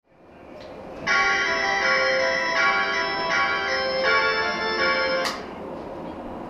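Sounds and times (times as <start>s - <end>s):
melody: 1.1s - 5.4s.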